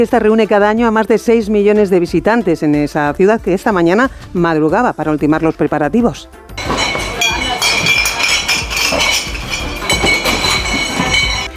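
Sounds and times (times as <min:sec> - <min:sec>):
speech: 0:00.0 - 0:07.4
bottles clinking inside bar counters at Oktoberfest in Munich: 0:06.6 - 0:11.5.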